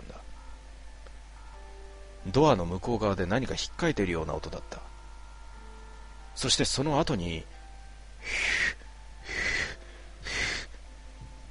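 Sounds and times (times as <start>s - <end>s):
speech: 2.3s - 4.9s, 6.4s - 7.6s
wheezing breathing sound effect: 8.2s - 10.8s.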